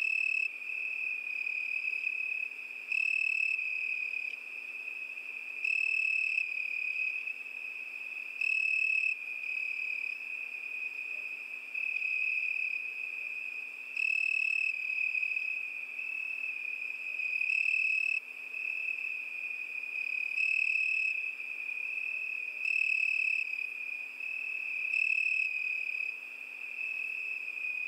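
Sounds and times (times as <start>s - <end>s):
crickets trilling at night: 0.0s - 27.8s.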